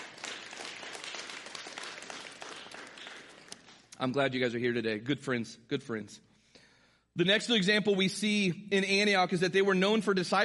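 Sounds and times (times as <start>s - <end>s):
audience clapping: 0.0s - 4.1s
speech: 4.0s - 6.3s, 7.2s - 10.4s.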